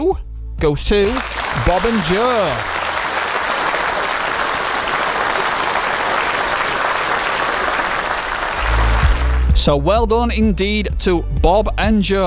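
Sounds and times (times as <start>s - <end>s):
speech: 0.0s - 2.8s, 9.6s - 12.2s
crowd clapping: 1.0s - 9.7s.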